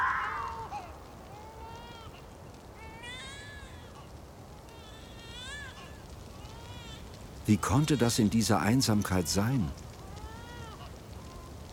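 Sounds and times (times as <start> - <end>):
fox crying: 0.0 - 1.0
small child crying in a snowy wilderness: 0.0 - 7.1, 10.0 - 11.7
speech: 7.5 - 9.9.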